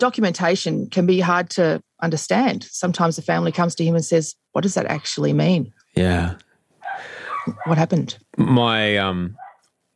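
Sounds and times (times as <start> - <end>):
speech: 0.0 - 9.4
dog barking: 6.8 - 7.8, 9.4 - 9.7.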